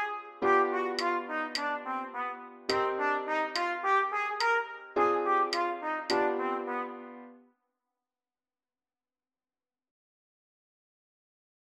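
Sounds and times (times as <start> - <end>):
jazz chord inversions filled with scale tones: 0.0 - 7.4.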